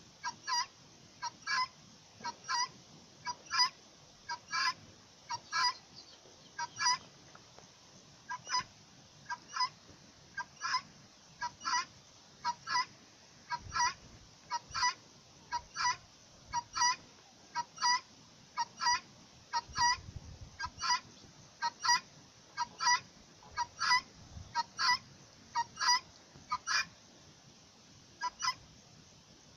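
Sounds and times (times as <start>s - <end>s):
Iranian Bec chicken calling: 0.2s - 7.2s, 8.3s - 12.9s, 13.5s - 26.9s, 28.2s - 28.6s.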